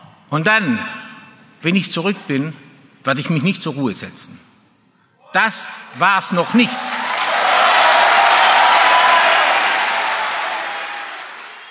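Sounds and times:
speech: 0:00.3 - 0:01.0, 0:01.6 - 0:04.5, 0:05.3 - 0:06.9
FC Bayern fans giving a standing ovation: 0:06.3 - 0:11.6.

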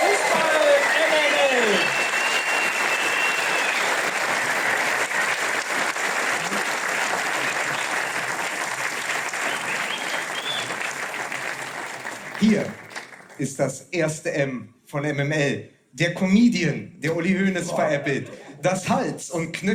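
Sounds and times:
thunderous live audience applause: 0:00.0 - 0:13.5
faint whistles: 0:01.6 - 0:04.0, 0:09.5 - 0:10.8
speech: 0:13.6 - 0:19.7
laughter: 0:17.7 - 0:18.8.

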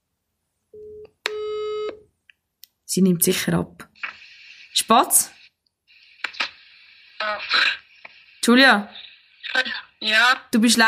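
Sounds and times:
telephone call ringing tone: 0:00.8 - 0:02.0
speech: 0:02.9 - 0:04.2, 0:04.8 - 0:05.4, 0:08.4 - 0:10.8.

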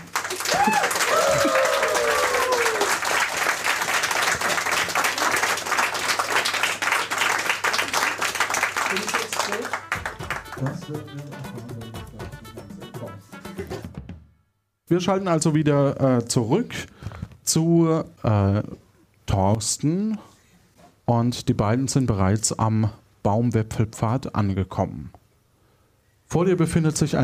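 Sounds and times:
applause: 0:00.0 - 0:11.3
speech: 0:00.5 - 0:01.6, 0:10.9 - 0:11.6, 0:14.9 - 0:16.9, 0:17.5 - 0:18.8, 0:19.4 - 0:20.3, 0:21.1 - 0:25.2, 0:26.3 - 0:27.2.

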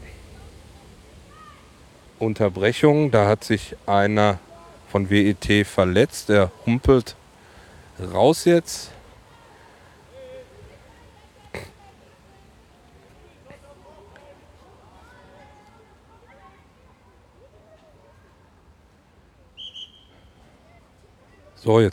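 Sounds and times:
murmur of voices: 0:00.0 - 0:21.9
outdoor crowd noise: 0:00.0 - 0:21.9
speech: 0:02.2 - 0:07.2, 0:08.0 - 0:09.0, 0:21.6 - 0:21.9
referee's whistle blown during kids' game: 0:19.6 - 0:20.4.

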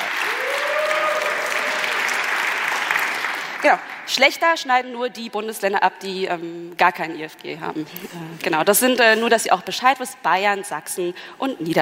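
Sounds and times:
crowd applause: 0:00.0 - 0:04.1
speech: 0:03.6 - 0:11.7.

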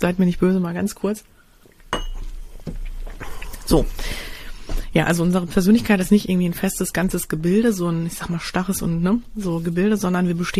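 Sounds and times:
speech: 0:00.0 - 0:01.4, 0:03.7 - 0:04.3, 0:04.9 - 0:10.5
drinking a sip of water from a glass: 0:01.6 - 0:04.6.

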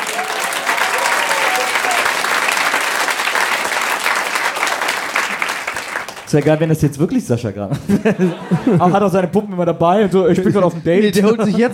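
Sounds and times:
audience applause: 0:00.0 - 0:06.7
speech: 0:06.3 - 0:11.7
laughter: 0:07.7 - 0:11.7.

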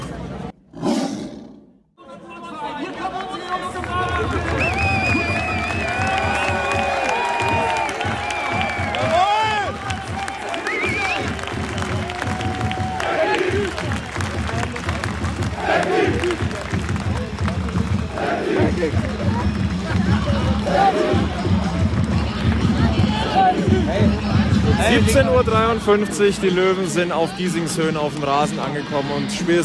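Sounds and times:
big football crowd chanting and cheering near the stands: 0:02.0 - 0:29.6
whistles in a football crowd: 0:04.4 - 0:06.2, 0:10.6 - 0:12.1
speech: 0:25.8 - 0:29.6.

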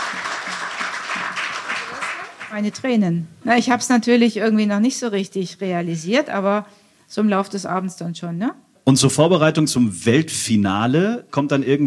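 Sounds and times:
audience applause: 0:00.0 - 0:02.9
speech: 0:02.5 - 0:11.8.

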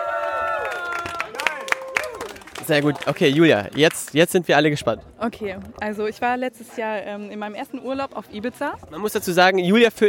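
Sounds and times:
audience clapping and cheering: 0:00.0 - 0:04.6
speech: 0:02.7 - 0:10.0.

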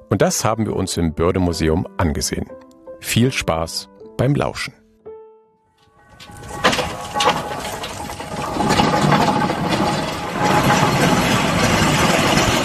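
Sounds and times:
speech: 0:00.1 - 0:04.8
steam-powered locomobile engine running: 0:06.2 - 0:12.6.

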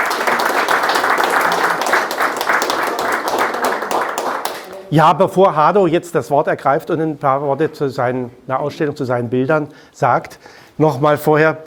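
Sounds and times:
audience applause: 0:00.0 - 0:04.9
speech: 0:04.9 - 0:11.6.

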